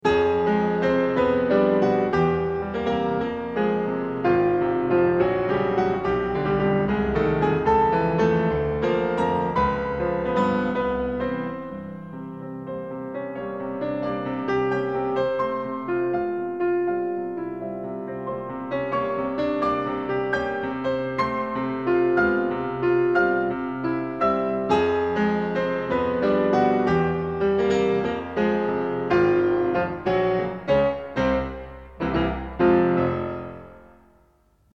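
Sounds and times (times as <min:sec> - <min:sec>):
carnival piano piece: 0:00.0 - 0:34.7.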